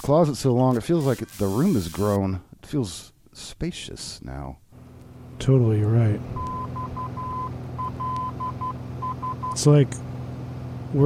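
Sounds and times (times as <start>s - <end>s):
speech: 0.0s - 4.6s, 5.4s - 6.6s, 9.6s - 10.1s
beeping distress signal tones: 6.3s - 9.6s.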